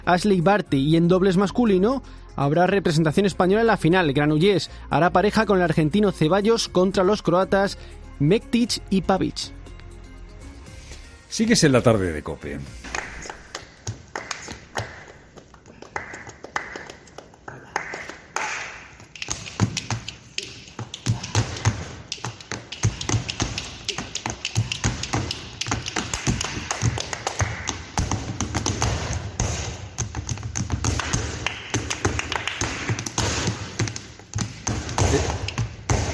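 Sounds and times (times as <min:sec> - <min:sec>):
speech: 0:00.0 - 0:09.6, 0:11.3 - 0:13.1
flamenco soleá: 0:12.8 - 0:36.1
rhythmic tapping: 0:12.8 - 0:36.1.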